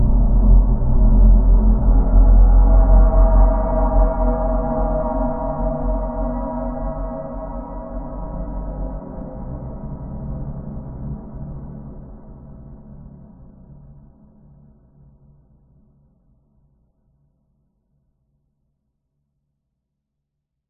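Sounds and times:
squeaky metal designed spooky drone: 0.0s - 10.1s.

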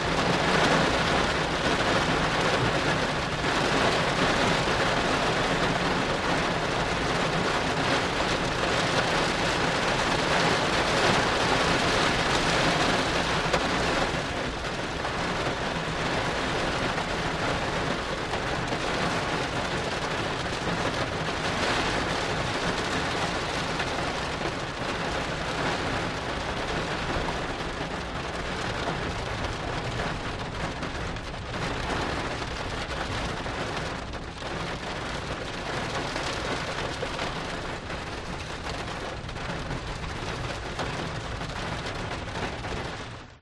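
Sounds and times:
medium car outside: 0.0s - 43.4s
rain outside heard from interior: 0.0s - 43.4s.

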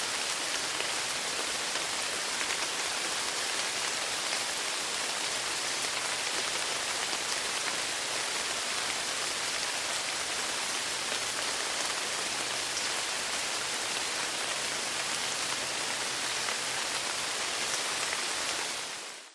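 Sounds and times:
heavy rain in jungle in Krabi Thailand: 0.0s - 19.3s.

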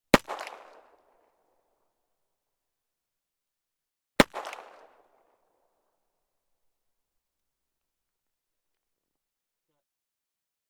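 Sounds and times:
1911 pistol gunshot: 0.1s - 1.1s, 4.2s - 5.3s.

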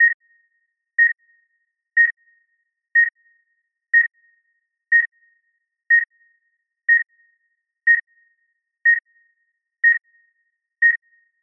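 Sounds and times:
medical heart rate monitor beeping fast: 0.0s - 0.2s, 1.0s - 1.2s, 2.0s - 2.2s, 3.0s - 3.2s, 4.0s - 4.2s, 4.9s - 5.1s, 5.9s - 6.1s, 6.9s - 7.1s, 7.9s - 8.1s, 8.8s - 9.1s, 9.8s - 10.0s, 10.8s - 11.2s.

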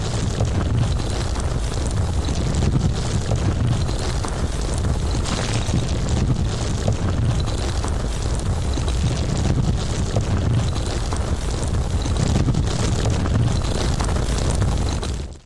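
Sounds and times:
landslide of rocks and boulders with heavy low frequency rumble: 0.0s - 15.2s.

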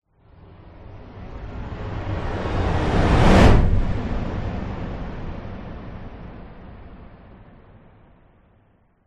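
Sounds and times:
whoosh: 1.6s - 7.5s.

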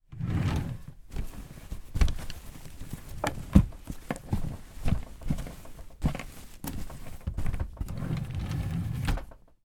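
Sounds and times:
rummaging through clothing in a drawer: 0.0s - 9.6s
clothing drawer opening: 0.1s - 1.0s, 6.9s - 9.5s
clothing drawer shutting: 7.6s - 9.5s.

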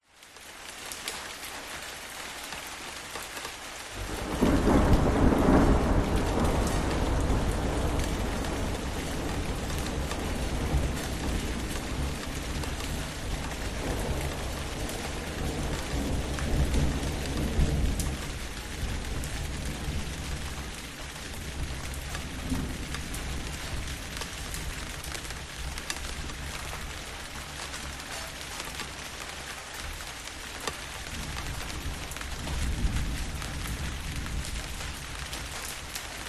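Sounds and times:
rain: 0.0s - 36.2s
sharp thunder: 4.0s - 27.0s, 31.0s - 35.6s.

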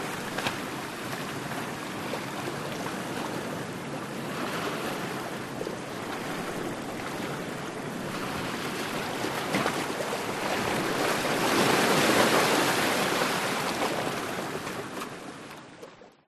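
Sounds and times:
ocean waves medium splash into rocks: 0.0s - 15.5s
distant surf: 0.0s - 15.8s.

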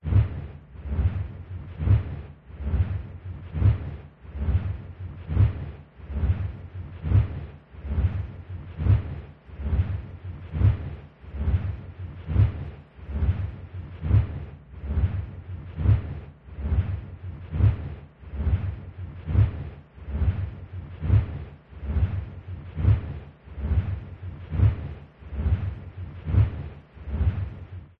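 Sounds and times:
large industrial wind turbine spinning fast whoosh: 0.0s - 27.9s.

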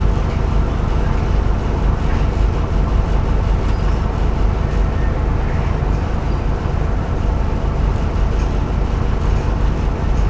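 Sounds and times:
bus engine idling heard inside the bus: 0.1s - 10.2s.

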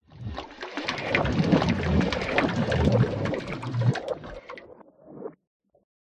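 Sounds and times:
water movement in tank pipe: 0.0s - 5.4s.

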